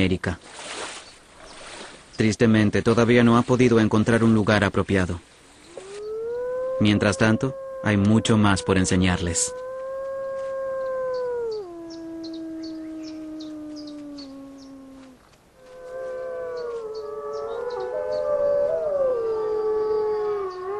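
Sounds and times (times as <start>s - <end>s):
speech: 0.0s - 0.6s, 2.2s - 5.3s, 6.8s - 9.7s
wolf pack howling in chorus: 5.7s - 20.7s.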